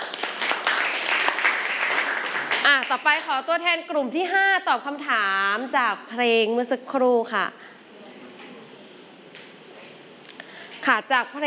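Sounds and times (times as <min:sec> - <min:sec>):
applause from a classroom audience during a group quiz: 0:00.0 - 0:03.3
speech: 0:02.8 - 0:07.7, 0:10.8 - 0:11.4.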